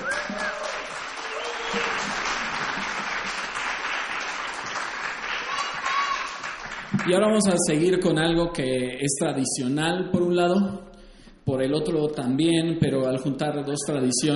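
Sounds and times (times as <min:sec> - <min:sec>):
whistles and cheers: 0:00.0 - 0:02.5, 0:05.3 - 0:06.4
audience applause after song: 0:00.0 - 0:07.4
speech: 0:07.1 - 0:10.9, 0:11.5 - 0:14.3.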